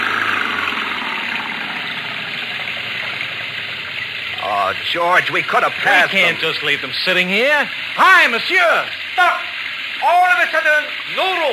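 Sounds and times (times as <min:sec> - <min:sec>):
car engine revving in mud: 0:00.0 - 0:07.0
speech: 0:04.7 - 0:09.4, 0:10.0 - 0:11.5.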